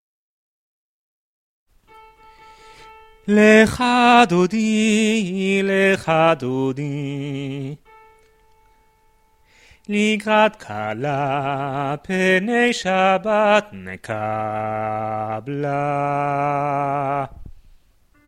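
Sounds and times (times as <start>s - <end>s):
bass voice singing: 3.3s - 7.8s, 9.9s - 17.5s.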